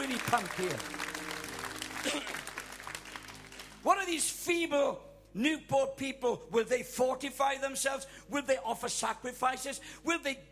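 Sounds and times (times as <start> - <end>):
audience clapping: 0.0 - 3.9
speech: 0.3 - 1.0, 2.0 - 2.5, 3.8 - 10.5.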